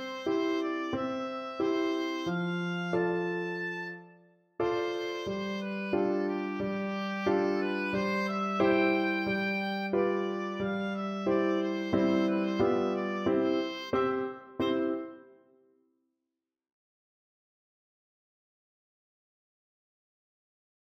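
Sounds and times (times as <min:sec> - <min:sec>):
oboe playing opera music: 0:00.0 - 0:04.2, 0:04.8 - 0:15.0.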